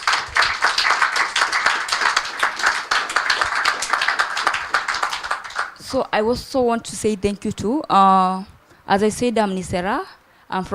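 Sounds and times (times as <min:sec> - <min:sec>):
audience applause: 0:00.0 - 0:05.9
speech: 0:05.9 - 0:10.7.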